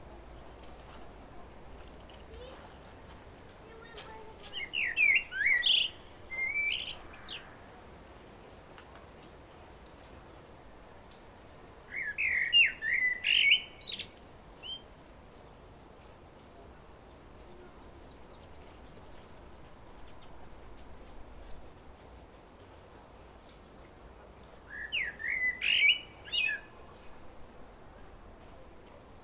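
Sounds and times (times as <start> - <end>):
common blackbird song: 4.4 - 7.6, 11.9 - 14.9, 17.8 - 21.5, 24.6 - 27.1.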